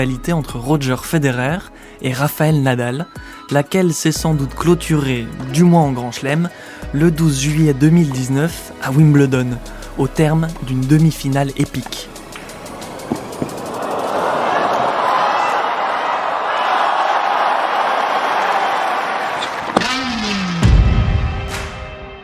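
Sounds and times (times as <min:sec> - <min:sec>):
speech: 0:00.0 - 0:12.1
tennis stadium crowd applauding and cheering: 0:12.3 - 0:22.1.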